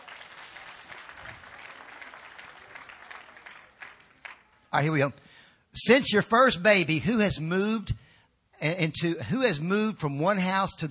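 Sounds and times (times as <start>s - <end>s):
audience clapping: 0.0s - 4.8s
speech: 4.7s - 5.2s, 5.8s - 8.0s, 8.6s - 10.8s.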